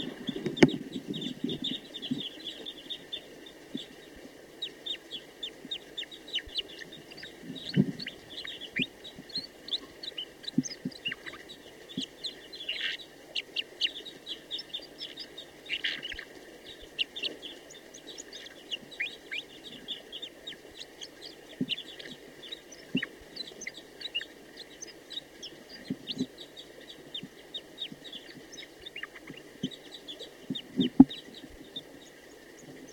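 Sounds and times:
female bird singing: 0.0 - 32.9.

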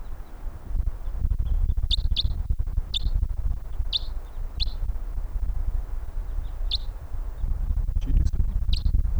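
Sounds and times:
wild birds calling: 0.0 - 9.1.

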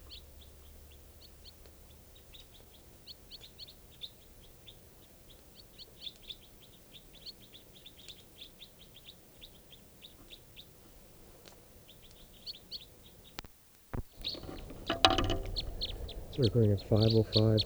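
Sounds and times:
flock of white-winged crossbills calling: 14.2 - 17.6
speech: 16.4 - 17.6.

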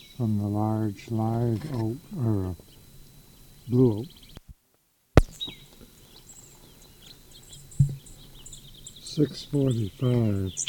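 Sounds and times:
faint bird song: 0.0 - 4.5, 5.2 - 10.6
hiss: 0.0 - 10.6
speech: 0.2 - 2.7, 3.7 - 4.2, 9.2 - 10.6
loud thump: 5.2 - 5.4
knock: 7.8 - 8.0.

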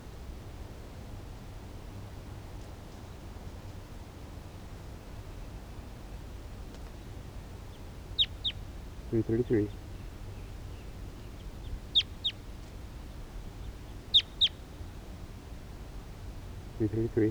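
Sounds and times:
wild bird calling: 7.5 - 17.2
speech: 9.1 - 9.8, 16.8 - 17.2.

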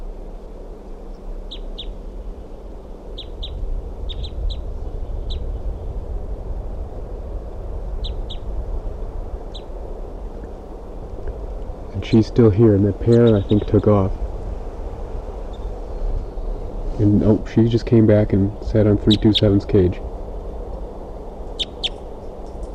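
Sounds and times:
wild bird calling: 1.1 - 2.0, 3.0 - 5.8, 8.0 - 8.5, 9.4 - 9.7, 12.0 - 14.1, 15.4 - 18.0, 18.6 - 19.8, 21.2 - 22.7
speech: 12.1 - 14.2, 17.0 - 20.1.

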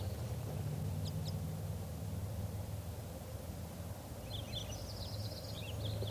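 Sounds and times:
wild birds chirping in a flock: 0.0 - 1.6, 4.2 - 6.0
steady hiss and low rumble: 0.0 - 6.0.

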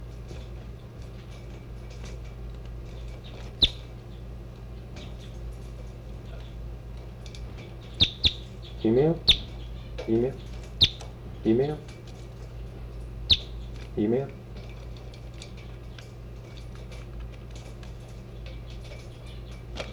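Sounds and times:
birds chirping: 0.0 - 19.9
faint steady hum: 0.0 - 19.9
throaty warbling bird calls: 3.6 - 3.9, 7.8 - 11.8, 13.2 - 13.8
speech: 8.8 - 9.3, 10.1 - 10.5, 11.4 - 11.9, 14.0 - 14.4.

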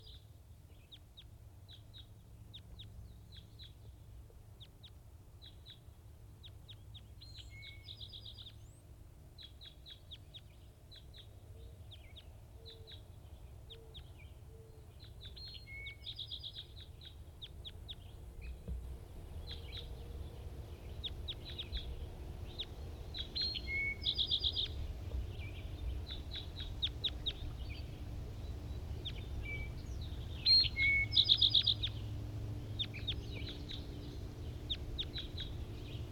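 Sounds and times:
wild birds singing: 0.0 - 36.1.

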